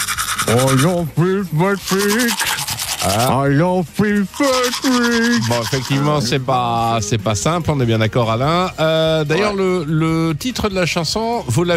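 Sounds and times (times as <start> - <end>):
teeth brushing: 0.0 - 6.4
speech: 0.5 - 11.7.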